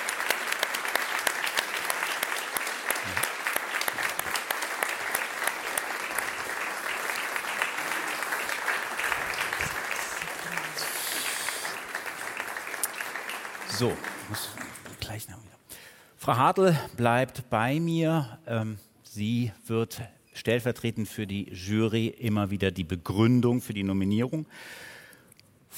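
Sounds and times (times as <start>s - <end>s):
audience applause: 0.0s - 15.0s
speech: 13.8s - 15.5s, 16.2s - 24.9s.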